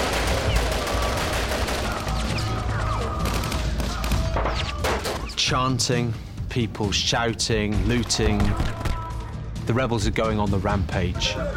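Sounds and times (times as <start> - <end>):
gunshots fired from a truck: 0.0 - 5.3
speech: 5.4 - 8.8, 9.7 - 11.5.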